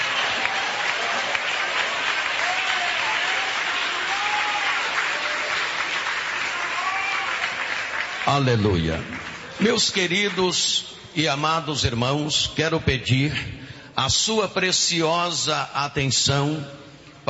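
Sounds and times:
audience clapping hands: 0:00.0 - 0:10.8
speech: 0:08.3 - 0:17.2.

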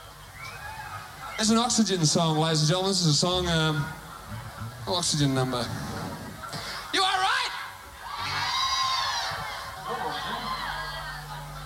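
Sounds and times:
live audience crowd cheering: 0:00.0 - 0:11.6
speech: 0:01.4 - 0:04.0, 0:04.9 - 0:05.9
laughter: 0:08.6 - 0:11.6.

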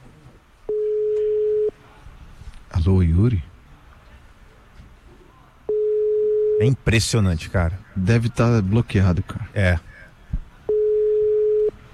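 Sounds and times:
faint noise: 0:00.0 - 0:11.9
low-pitched telephone beep while a call is placed: 0:00.7 - 0:01.7, 0:05.7 - 0:06.7, 0:10.7 - 0:11.8
speech: 0:02.9 - 0:03.5, 0:06.6 - 0:09.9.

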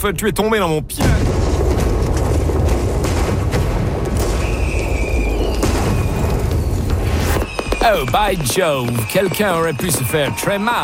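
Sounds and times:
speech: 0:00.0 - 0:01.8, 0:07.8 - 0:10.8
barrels of gunpowder exploding: 0:01.0 - 0:08.5.

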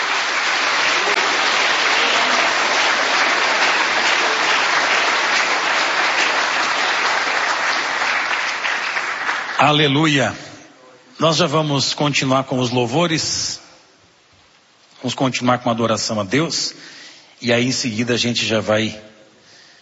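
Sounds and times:
audience applause: 0:00.0 - 0:09.8
speech: 0:09.6 - 0:10.5, 0:11.2 - 0:13.6, 0:15.0 - 0:19.1.

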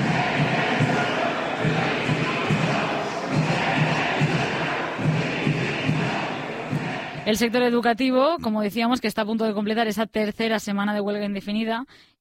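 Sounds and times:
crowd of teachers chanting protest slogans: 0:00.0 - 0:07.4
speech: 0:07.3 - 0:12.1.

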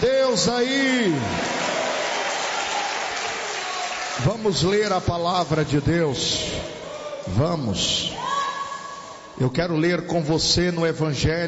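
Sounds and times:
speech: 0:00.4 - 0:01.6, 0:04.2 - 0:06.7, 0:07.3 - 0:08.3, 0:09.4 - 0:11.4
church congregation applauding during a worship service: 0:00.6 - 0:05.8.

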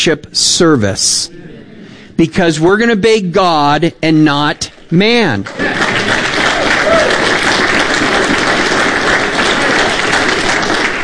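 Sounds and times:
speech: 0:00.0 - 0:01.6, 0:02.2 - 0:05.9
audience clapping: 0:05.2 - 0:11.0.

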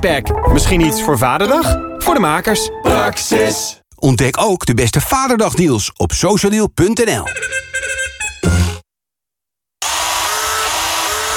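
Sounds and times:
speech: 0:00.0 - 0:07.9
cordless drill whirring: 0:09.8 - 0:11.3.

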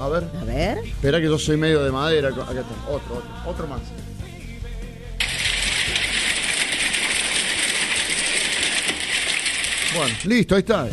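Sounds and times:
speech: 0:00.0 - 0:04.1, 0:10.0 - 0:10.9
hail falling: 0:05.2 - 0:10.3.

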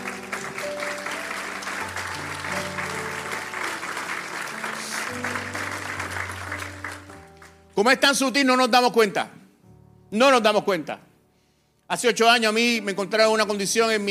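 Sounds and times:
applause: 0:00.0 - 0:07.8
speech: 0:07.8 - 0:09.4, 0:10.1 - 0:11.1, 0:11.9 - 0:14.0.

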